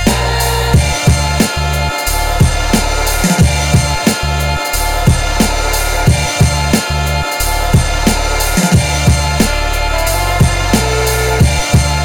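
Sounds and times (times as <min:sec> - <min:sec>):
big beats: 0:00.0 - 0:12.0.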